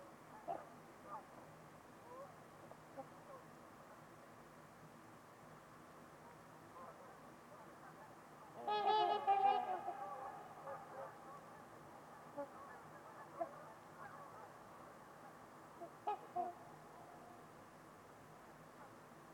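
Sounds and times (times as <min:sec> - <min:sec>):
trumpeter swan honking: 0:00.4 - 0:01.2, 0:07.9 - 0:17.4.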